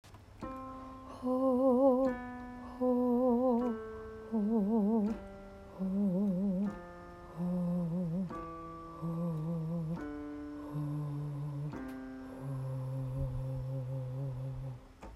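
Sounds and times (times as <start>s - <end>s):
falsetto voice: 1.1s - 5.2s, 5.8s - 8.4s, 9.0s - 14.9s.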